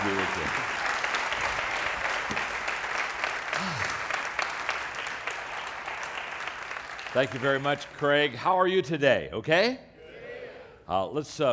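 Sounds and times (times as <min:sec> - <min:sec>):
church audience applause welcoming Dr. John Maxwell at Life Church: 0:00.0 - 0:08.4
speech: 0:07.2 - 0:09.9, 0:10.9 - 0:11.5.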